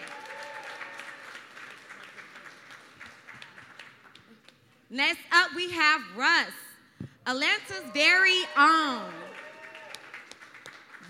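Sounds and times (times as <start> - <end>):
cheers: 0.0 - 1.5, 7.7 - 10.3
crowd applause: 0.0 - 4.4, 7.9 - 11.0
speech: 4.9 - 6.6, 7.2 - 9.2.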